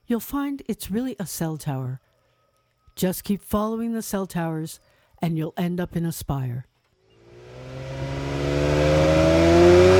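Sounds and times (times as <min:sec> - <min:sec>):
speech: 0:00.1 - 0:02.1, 0:03.0 - 0:06.7
rover engines roaring through bushes: 0:07.2 - 0:09.9.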